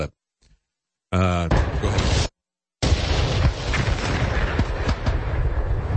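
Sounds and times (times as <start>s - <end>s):
speech: 1.1s - 2.0s
artillery guns firing on the last day of World War I: 1.5s - 5.9s.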